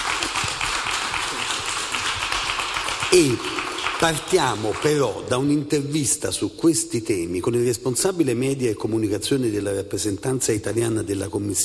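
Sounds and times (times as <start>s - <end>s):
welcoming applause for guests: 0.0s - 5.4s
speech: 3.1s - 11.6s.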